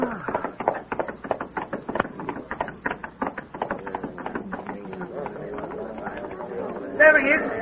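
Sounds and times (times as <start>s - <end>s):
horse hooves clip-clopping: 0.0s - 7.6s.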